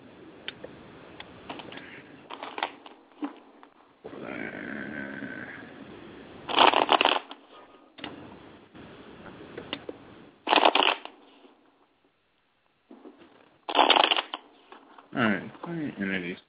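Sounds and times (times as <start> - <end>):
deck of cards riffle shuffling: 1.5 - 3.7, 6.5 - 7.5, 10.5 - 11.6, 12.9 - 15.1.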